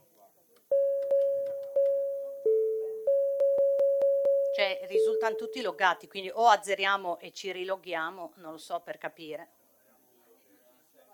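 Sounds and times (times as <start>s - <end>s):
council chair's bell ringing during a council session: 0.7s - 6.0s
speech: 4.6s - 9.6s.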